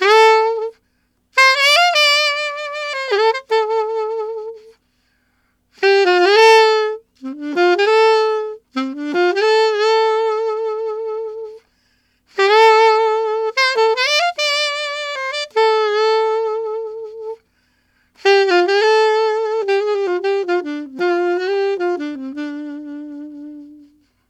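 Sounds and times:
alto saxophone rock ballad in D minor: 0.0s - 24.2s.

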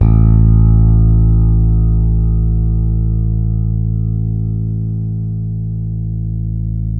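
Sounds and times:
six-string fretless guitar: 0.0s - 6.9s.

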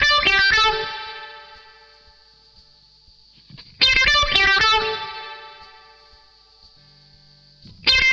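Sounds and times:
disco lead guitar in D: 0.0s - 8.1s.

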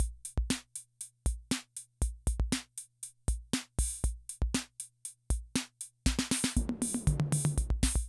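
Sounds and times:
classic drum machine rhythm loop: 0.0s - 8.0s.

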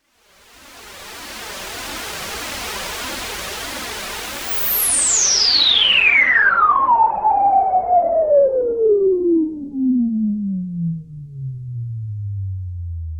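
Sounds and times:
Juno synthesizer noise: 4.8s - 13.1s.

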